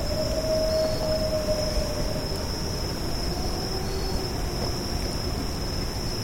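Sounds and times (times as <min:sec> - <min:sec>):
wolf howls: 0:00.0 - 0:06.1.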